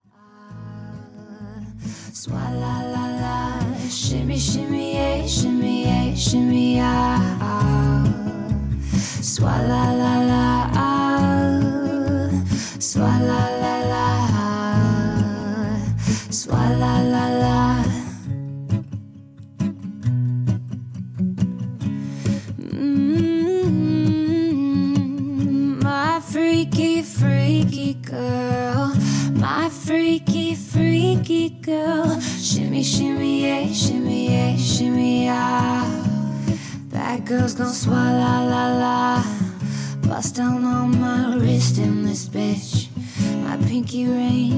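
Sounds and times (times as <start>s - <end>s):
acoustic music: 0.0s - 44.5s.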